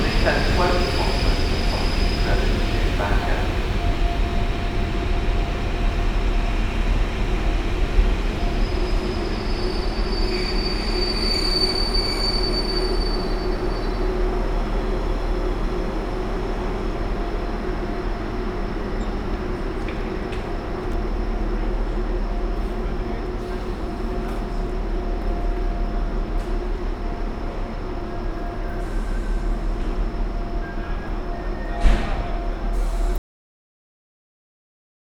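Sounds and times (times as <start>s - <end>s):
train station ambience in Liverpool: 0.0s - 33.2s.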